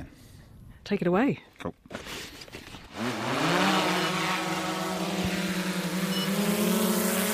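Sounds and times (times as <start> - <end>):
speech: 0.9 - 2.4
drone taking off and flying: 2.9 - 7.3.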